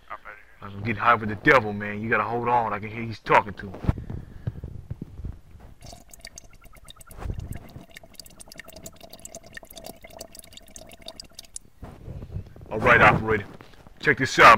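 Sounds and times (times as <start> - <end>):
speech: 0.7 - 4.0, 13.3 - 14.5
water bong bubbling: 5.8 - 11.6.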